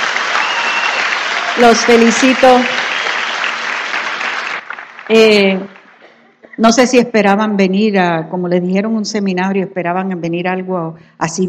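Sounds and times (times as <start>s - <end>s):
audience applause: 0.0s - 6.4s
speech: 1.6s - 2.8s, 5.1s - 5.8s, 6.6s - 11.4s.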